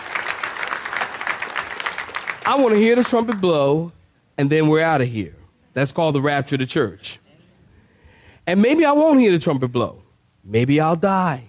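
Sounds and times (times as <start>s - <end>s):
audience clapping hands: 0.0s - 3.8s
speech: 2.4s - 7.2s, 8.5s - 11.4s.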